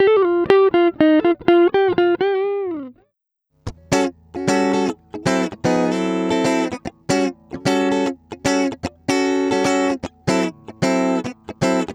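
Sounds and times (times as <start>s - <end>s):
electric guitar: 0.0s - 3.0s, 3.7s - 11.9s.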